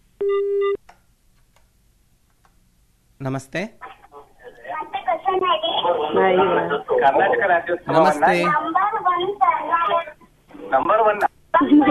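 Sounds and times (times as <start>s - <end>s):
telephone busy tone beep after a call is cut off: 0.2s - 0.8s
speech: 3.2s - 3.9s, 5.3s - 9.8s, 10.7s - 11.3s.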